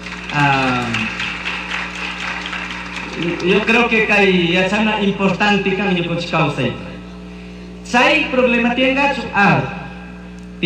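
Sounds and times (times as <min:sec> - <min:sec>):
audience applause: 0:00.0 - 0:04.9
speech: 0:00.3 - 0:01.2, 0:03.2 - 0:06.9, 0:07.9 - 0:09.8.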